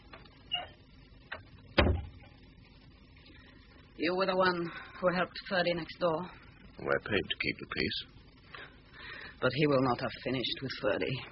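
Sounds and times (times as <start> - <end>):
door being shut: 1.8 - 2.2
speech: 4.0 - 8.1, 9.4 - 11.3.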